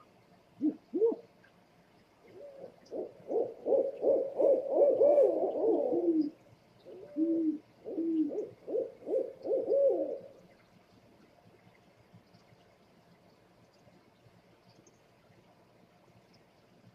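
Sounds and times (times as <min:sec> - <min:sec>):
scops owl hooting: 0:00.6 - 0:01.3, 0:02.3 - 0:10.4.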